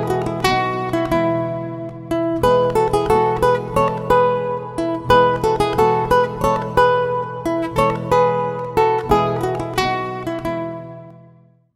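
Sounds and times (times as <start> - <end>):
acoustic guitar playing classical music: 0.0 - 11.7.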